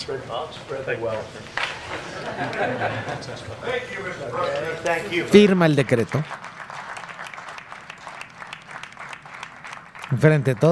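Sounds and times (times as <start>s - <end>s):
speech: 0.0s - 6.5s, 10.1s - 10.7s
laughter: 1.8s - 4.8s
people applauding: 4.4s - 10.7s.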